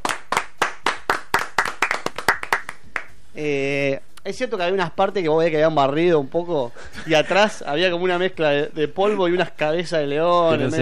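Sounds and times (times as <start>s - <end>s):
hands clapping: 0.0s - 3.2s
speech: 3.4s - 10.8s.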